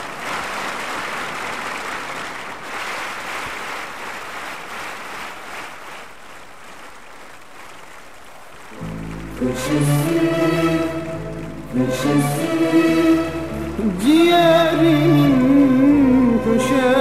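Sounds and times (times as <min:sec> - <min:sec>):
crowd applause: 0:00.0 - 0:06.0, 0:08.6 - 0:14.2
speech: 0:09.4 - 0:10.8, 0:11.7 - 0:16.9.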